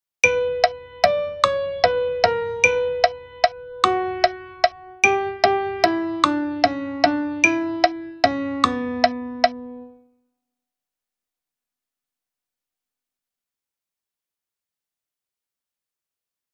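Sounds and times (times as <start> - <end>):
melody for dictation: 0.3 - 10.0.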